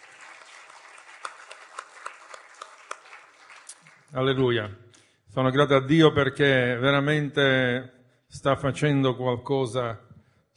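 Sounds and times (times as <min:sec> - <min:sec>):
audience applause: 0:00.0 - 0:04.6
speech: 0:04.1 - 0:10.0.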